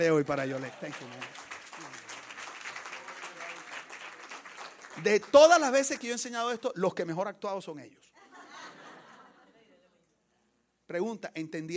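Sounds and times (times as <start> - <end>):
speech: 0.0 - 1.5, 5.0 - 8.0, 10.9 - 11.7
audience applause: 0.0 - 5.7
laughter: 8.2 - 9.8.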